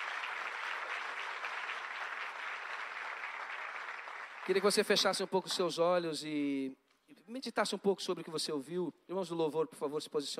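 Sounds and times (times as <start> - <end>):
audience applauding: 0.0 - 5.5
speech: 4.5 - 10.3.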